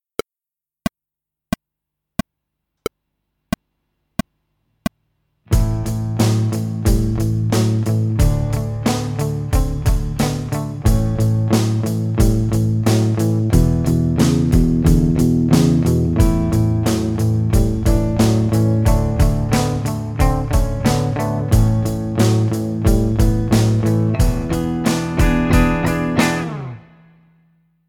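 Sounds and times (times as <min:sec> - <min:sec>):
drums: 0:05.5 - 0:26.8.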